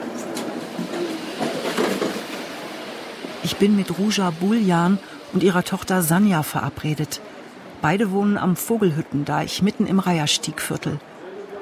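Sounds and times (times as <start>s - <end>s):
S-Bahn S3 commuter train rumbling: 0.0s - 11.4s
speech: 3.4s - 11.1s.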